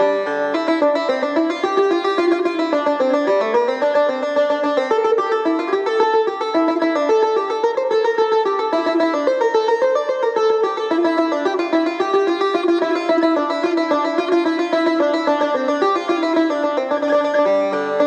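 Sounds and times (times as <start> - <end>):
tar playing in nava mode: 0.0 - 18.0.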